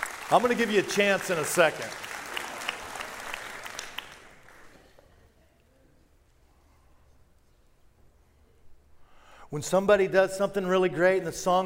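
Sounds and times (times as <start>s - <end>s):
church congregation applauding: 0.0s - 5.1s
speech: 0.3s - 2.0s, 9.5s - 11.6s
quiet room murmur: 4.1s - 9.3s.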